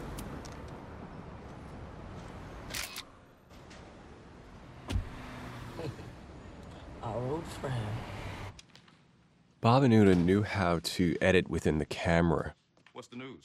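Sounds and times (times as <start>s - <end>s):
car driving away: 3.6s - 8.6s
speech: 7.5s - 8.1s, 9.6s - 13.4s.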